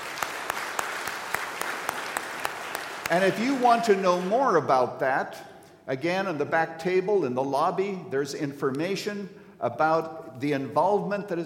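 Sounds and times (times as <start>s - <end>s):
church gathering applause welcoming ministry network members: 0.0s - 4.6s
speech: 3.1s - 11.4s.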